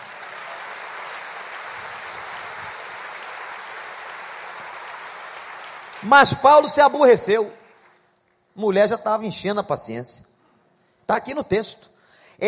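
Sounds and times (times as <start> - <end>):
audience applause: 0.0 - 6.8
speech: 6.0 - 7.6, 8.6 - 10.3, 11.1 - 12.4.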